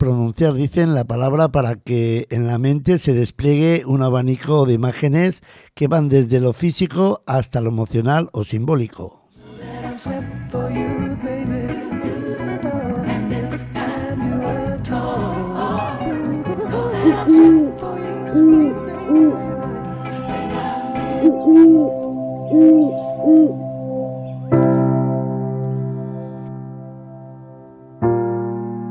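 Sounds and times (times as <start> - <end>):
speech: 0.0 - 9.2, 10.0 - 11.7, 17.1 - 19.4, 22.5 - 23.6
sustained instrumental music: 9.4 - 28.8
low rounded owl hoots: 15.7 - 24.4.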